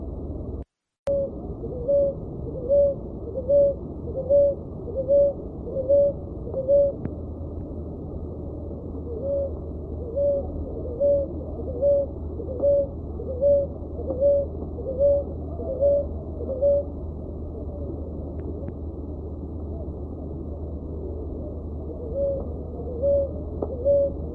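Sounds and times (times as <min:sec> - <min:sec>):
dove uttering short mellow hoot-like notes: 0:01.1 - 0:07.1, 0:08.7 - 0:17.9, 0:21.0 - 0:24.3.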